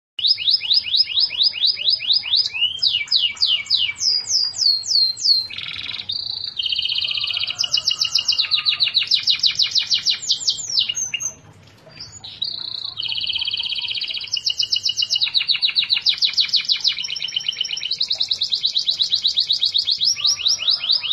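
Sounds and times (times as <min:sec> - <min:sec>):
canary singing: 0:00.2 - 0:21.1.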